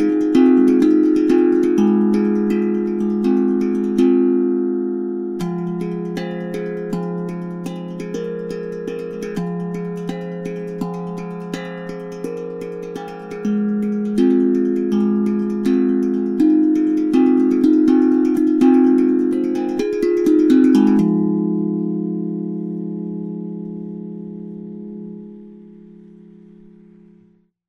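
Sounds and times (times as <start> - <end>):
eight-tone minor tongue drum notes: 0.0 - 27.2.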